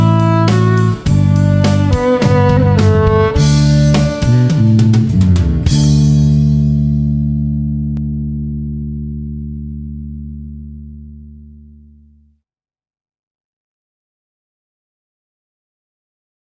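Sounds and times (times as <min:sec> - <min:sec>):
playalong music track: 0:00.0 - 0:08.2.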